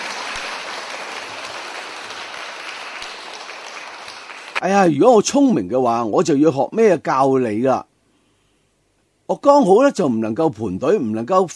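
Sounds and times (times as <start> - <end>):
audience applause: 0.0 - 4.6
speech: 4.6 - 7.9, 9.3 - 11.5.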